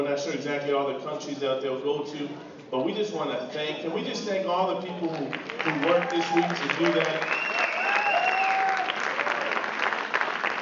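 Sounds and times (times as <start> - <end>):
speech: 0.0 - 7.5
audience applause: 5.2 - 10.6.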